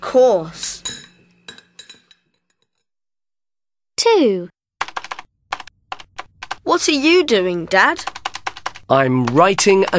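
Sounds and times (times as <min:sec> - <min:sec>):
speech: 0:00.1 - 0:00.7, 0:04.2 - 0:04.6, 0:06.7 - 0:08.2, 0:08.9 - 0:09.9
cutlery and dishes clinking as a table is set for lunch: 0:00.8 - 0:02.8.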